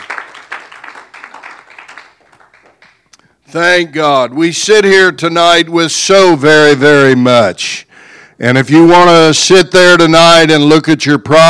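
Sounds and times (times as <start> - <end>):
audience hand clapping: 0.0 - 3.2
speech: 3.5 - 7.8, 8.4 - 11.4.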